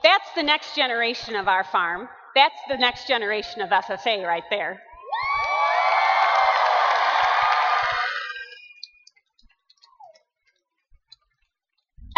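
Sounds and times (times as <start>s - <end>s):
speech: 0.0s - 4.9s
children clapping: 5.6s - 8.5s.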